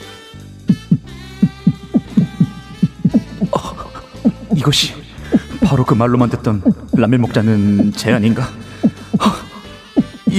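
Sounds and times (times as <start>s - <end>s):
heartbeat sound effect: 0.7s - 5.8s, 6.6s - 7.2s, 8.8s - 10.3s
speech: 4.6s - 5.0s, 5.7s - 8.7s.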